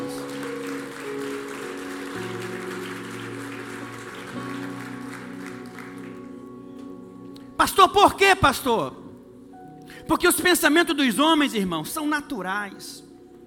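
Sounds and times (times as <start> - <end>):
audience applause: 0.0 - 6.5
speech: 7.8 - 9.0, 10.1 - 13.0.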